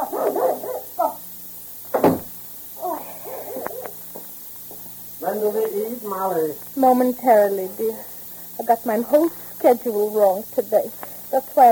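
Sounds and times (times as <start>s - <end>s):
dog sharp bark: 0.0s - 1.2s
speech: 5.4s - 11.6s.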